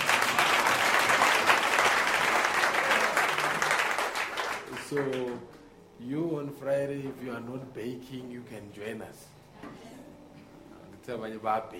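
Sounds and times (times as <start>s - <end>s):
audience applause for young people from an evangelism campaign: 0.0s - 5.4s
speech: 4.9s - 9.9s, 11.1s - 11.7s.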